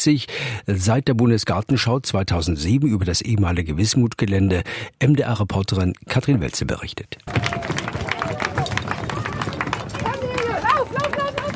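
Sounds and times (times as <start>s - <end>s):
speech: 0.0s - 7.8s
footsteps on a bridge deck: 7.3s - 11.5s
children's voices and chatter: 7.4s - 11.5s.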